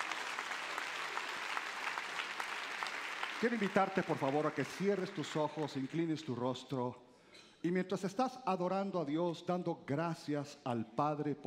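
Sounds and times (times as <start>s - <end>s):
loud applause from audience: 0.0s - 6.0s
speech: 3.4s - 11.4s.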